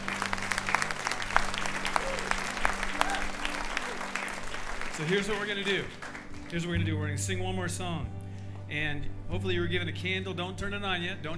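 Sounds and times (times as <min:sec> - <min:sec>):
audience applause: 0:00.0 - 0:06.8
speech: 0:05.0 - 0:11.3.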